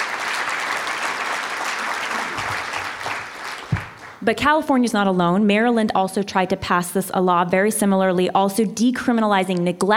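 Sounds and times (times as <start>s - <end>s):
audience clapping: 0.0s - 4.2s
speech: 4.2s - 9.9s.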